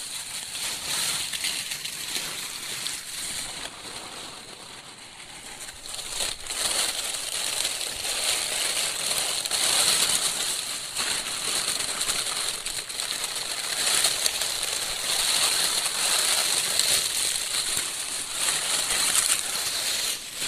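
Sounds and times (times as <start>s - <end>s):
dry London plane oak and maple leaves crunching: 0.0s - 20.4s.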